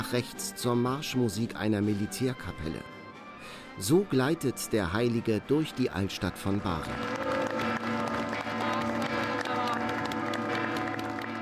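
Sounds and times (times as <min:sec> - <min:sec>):
speech: 0:00.1 - 0:07.3
applause of thousands of believers: 0:06.8 - 0:11.4.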